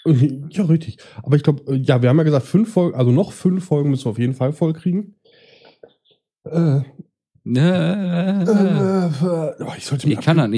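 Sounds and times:
speech: 0.0s - 5.2s, 6.4s - 10.5s
person burping: 6.4s - 9.7s.

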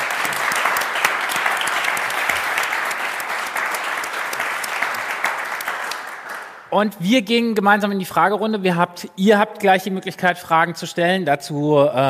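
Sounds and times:
audience applause: 0.0s - 6.7s
speech: 6.7s - 12.0s.

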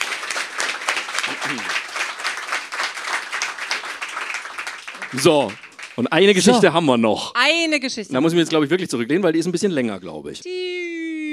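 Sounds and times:
audience applause: 0.0s - 6.8s
speech: 1.3s - 1.8s, 5.1s - 10.8s.

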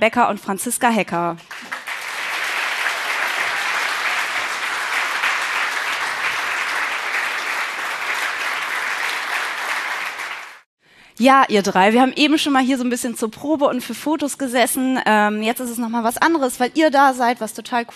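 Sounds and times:
speech: 0.0s - 1.9s, 11.2s - 17.9s
audience applause: 1.5s - 10.7s.

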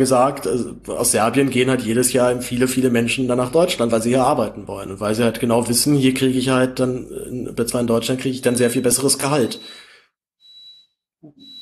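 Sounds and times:
speech: 0.0s - 9.8s
kitchen stove beeping: 8.5s - 9.8s, 10.4s - 11.6s.

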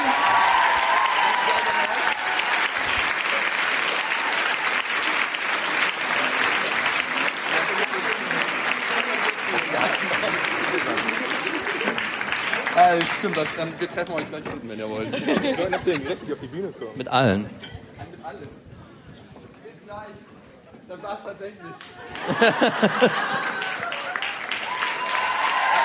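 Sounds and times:
concert audience applause: 0.0s - 14.4s, 21.9s - 25.8s
laughter: 9.0s - 12.7s, 15.0s - 16.7s, 21.8s - 24.2s
speech: 13.2s - 17.7s, 20.9s - 23.7s.

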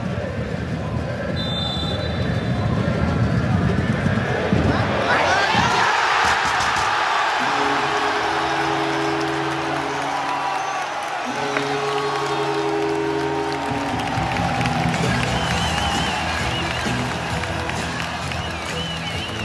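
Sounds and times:
football stadium crowd cheering: 0.0s - 19.4s
football stadium crowd chanting: 4.0s - 19.4s.

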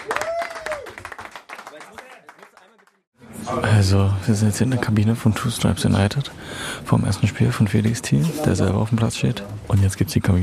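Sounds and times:
person whooping: 0.0s - 1.0s
small group applauding: 0.0s - 3.1s
speech: 3.5s - 10.4s.

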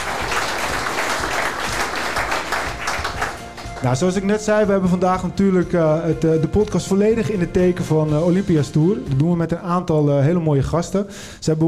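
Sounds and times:
audience applause: 0.0s - 4.0s
speech: 3.8s - 11.6s.

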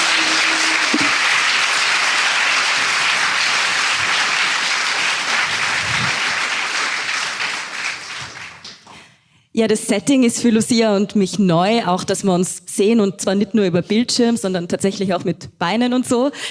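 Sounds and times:
live audience applause: 0.0s - 9.0s
speech: 9.6s - 16.4s.

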